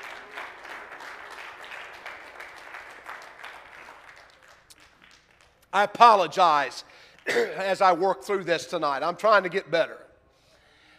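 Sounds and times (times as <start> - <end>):
audience clapping hands: 0.0 - 7.4
speech: 5.7 - 10.0.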